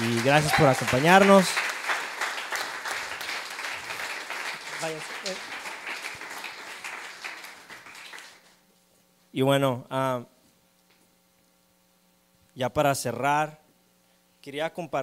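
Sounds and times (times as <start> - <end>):
audience applause: 0.0 - 8.6
speech: 0.2 - 1.7, 4.8 - 5.6, 9.3 - 10.3, 12.6 - 13.6, 14.4 - 15.0.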